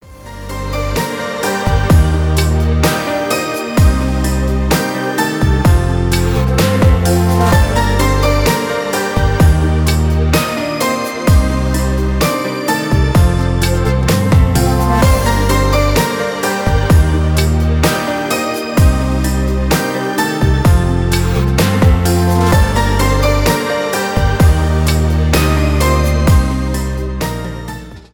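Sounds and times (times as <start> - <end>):
instrumental music: 0.0 - 28.1.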